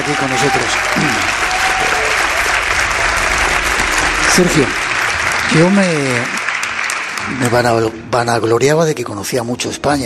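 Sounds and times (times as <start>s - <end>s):
audience applause: 0.0s - 8.0s
speech: 0.1s - 2.0s, 4.4s - 4.8s, 5.5s - 6.4s, 7.2s - 10.0s.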